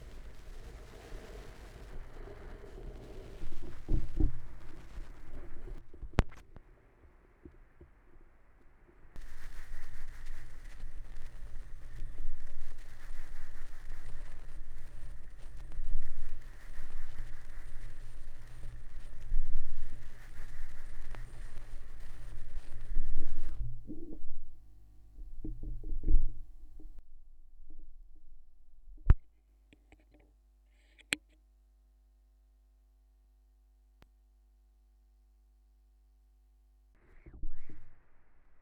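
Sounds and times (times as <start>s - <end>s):
vinyl record crackle with tape echo: 0.0s - 6.8s, 9.1s - 27.0s.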